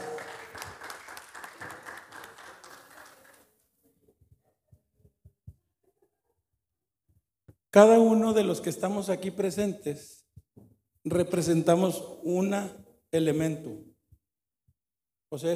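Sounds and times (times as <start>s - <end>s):
audience applause: 0.0s - 3.6s
speech: 7.7s - 10.2s, 11.1s - 13.9s, 15.3s - 15.5s.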